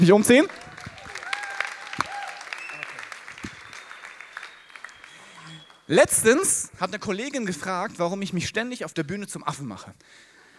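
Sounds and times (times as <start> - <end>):
speech: 0.0 - 0.6, 5.9 - 10.3
short audience applause: 0.0 - 5.9.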